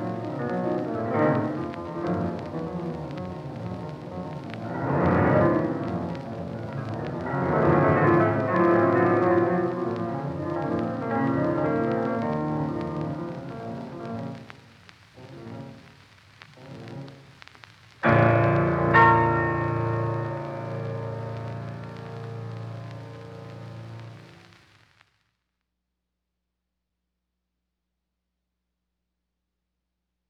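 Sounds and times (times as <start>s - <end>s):
piano sonata: 0.0s - 14.4s, 18.0s - 24.3s.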